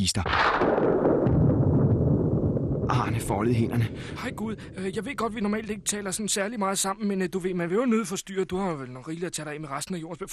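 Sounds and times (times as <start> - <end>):
speech: 0.0 - 1.3, 2.9 - 10.3
crashing thunderclap: 0.2 - 6.4.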